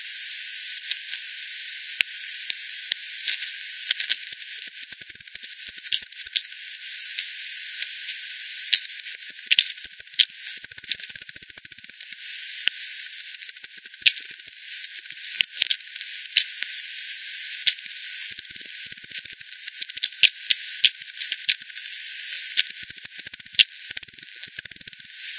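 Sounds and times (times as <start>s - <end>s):
steady hiss: 0.0s - 25.3s
bat echolocation clicks: 3.3s - 6.8s, 8.7s - 16.6s, 17.6s - 22.0s, 22.6s - 25.3s.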